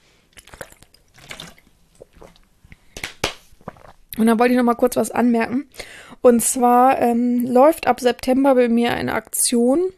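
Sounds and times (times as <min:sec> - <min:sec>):
sipping and swallowing water: 0:00.3 - 0:02.9, 0:03.6 - 0:04.1
speech: 0:04.2 - 0:09.9.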